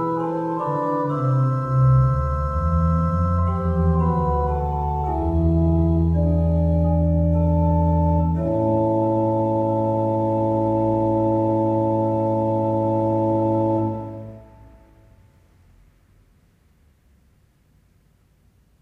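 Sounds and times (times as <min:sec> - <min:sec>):
organ trio piece in the third tone: 0:00.0 - 0:15.0.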